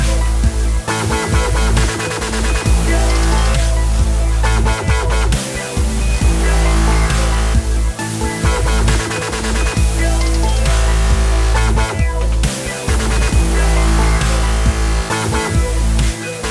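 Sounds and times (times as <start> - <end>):
liquid dubstep music: 0.0 - 16.4.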